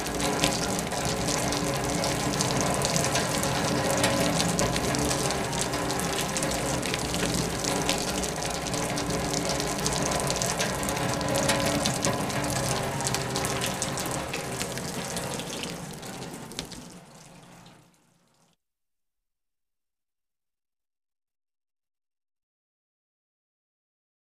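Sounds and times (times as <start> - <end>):
steady heavy rain: 0.0 - 17.8.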